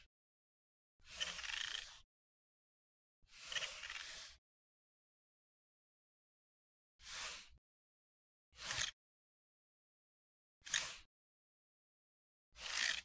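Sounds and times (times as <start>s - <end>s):
computer mouse moving: 1.1s - 2.1s, 3.4s - 4.3s, 10.7s - 11.1s, 12.6s - 13.0s.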